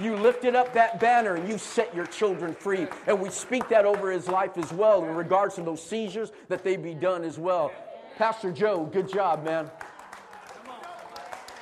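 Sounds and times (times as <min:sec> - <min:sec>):
audience clapping: 0:00.0 - 0:05.7, 0:08.6 - 0:11.5
speech: 0:00.0 - 0:09.9.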